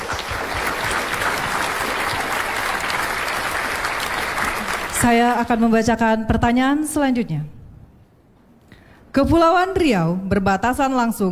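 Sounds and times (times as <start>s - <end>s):
audience applause for a quiz team: 0.0s - 5.5s
speech: 5.0s - 7.6s, 9.2s - 11.3s.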